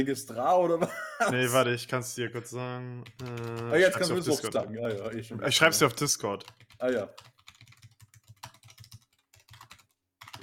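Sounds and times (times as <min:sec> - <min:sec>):
speech: 0:00.0 - 0:07.3
laughter: 0:00.6 - 0:01.7
typing on a computer keyboard: 0:03.0 - 0:03.8, 0:06.0 - 0:10.4.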